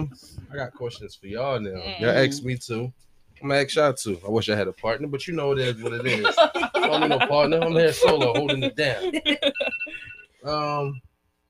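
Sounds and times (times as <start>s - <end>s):
speech: 0.0s - 9.5s, 10.4s - 11.1s
laughter: 5.4s - 10.1s
high electronic tones: 7.6s - 11.0s
buzzy alarm beep: 9.4s - 11.0s.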